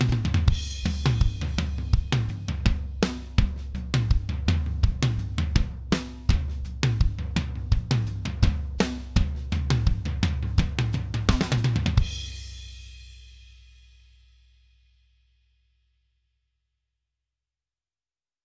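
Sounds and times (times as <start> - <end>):
compressed tom drum groove: 0.0 - 13.2.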